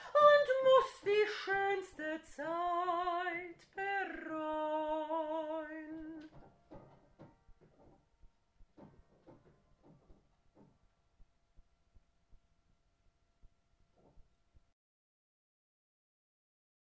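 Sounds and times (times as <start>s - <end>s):
person singing without accompaniment: 0.0s - 6.3s.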